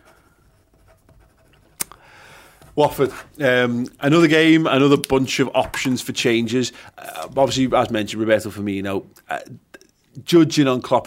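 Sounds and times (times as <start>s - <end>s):
someone writing something down: 0.5s - 1.8s
speech: 2.8s - 11.0s.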